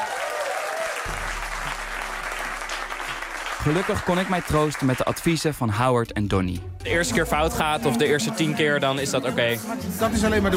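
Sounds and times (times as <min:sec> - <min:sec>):
audience applauding at a live event: 0:00.0 - 0:05.6
speech: 0:03.6 - 0:10.5.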